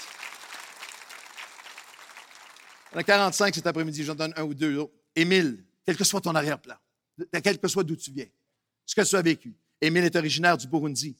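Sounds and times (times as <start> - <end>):
audience applause: 0.0 - 3.6
speech: 2.9 - 11.1.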